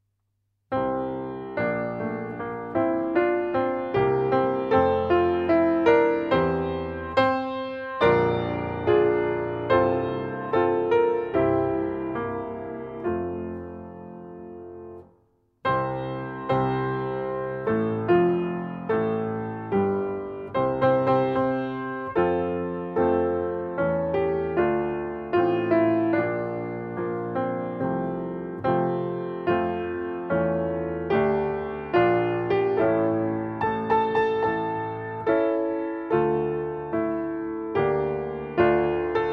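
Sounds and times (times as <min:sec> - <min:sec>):
piano: 0:00.7 - 0:39.3.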